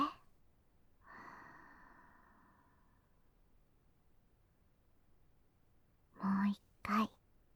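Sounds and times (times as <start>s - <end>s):
slow soft exhale during a guided relaxation breathing exercise: 1.0s - 3.1s.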